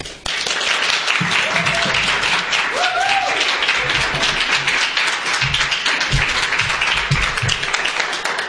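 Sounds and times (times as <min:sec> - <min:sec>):
audience applause: 0:00.0 - 0:08.4
whoops and cheers: 0:01.4 - 0:04.2.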